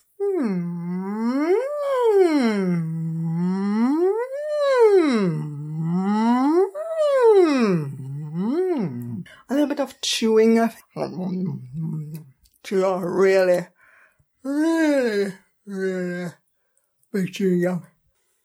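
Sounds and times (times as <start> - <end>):
vocal siren warm-up voice sliding up and down in pitch: 0.2 - 9.2
speech: 10.2 - 12.0, 12.7 - 13.7, 14.4 - 16.4, 17.2 - 17.9.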